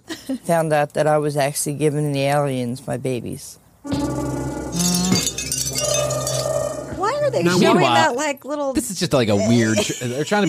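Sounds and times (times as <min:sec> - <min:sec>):
speech: 0:00.3 - 0:04.0, 0:07.3 - 0:10.4
wind chimes tinkling: 0:04.8 - 0:06.6.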